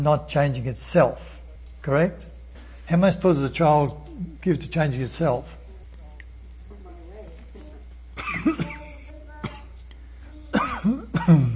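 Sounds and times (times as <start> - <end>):
speech: 0.0 - 2.3, 2.9 - 5.6, 8.4 - 8.7
person coughing after a drink went down the wrong way: 8.2 - 9.0, 10.5 - 11.5
throat clearing: 10.6 - 11.5.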